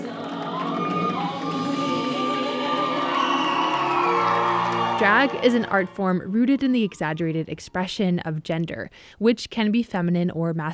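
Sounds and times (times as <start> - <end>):
crowd erupting in recognition at a drag show: 0.0 - 7.2
speech: 5.0 - 10.7.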